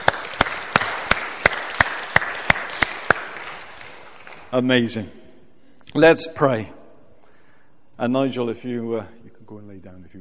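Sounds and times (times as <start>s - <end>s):
audience clapping: 0.0s - 4.7s
speech: 4.5s - 5.2s, 5.9s - 6.8s, 8.0s - 10.2s.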